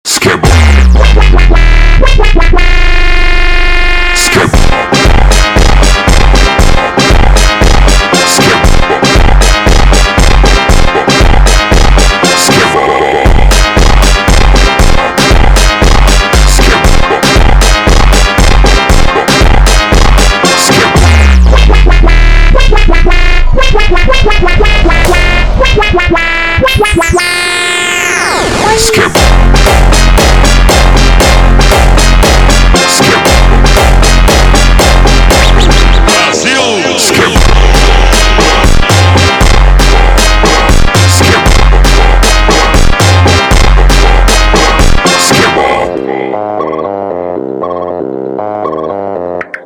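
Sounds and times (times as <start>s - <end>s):
slowed funk music: 0.4s - 49.6s.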